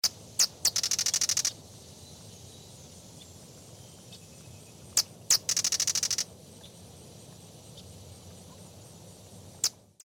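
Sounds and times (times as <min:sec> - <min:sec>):
small bird sharp chips and high ticking trills: 0:00.0 - 0:09.8.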